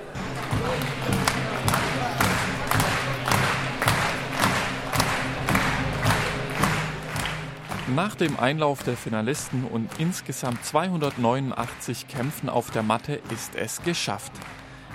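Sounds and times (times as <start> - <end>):
crowd clapping rhythmically: 0.0 - 14.9
loud music with heavy droning low end: 0.0 - 14.9
speech: 8.0 - 14.6.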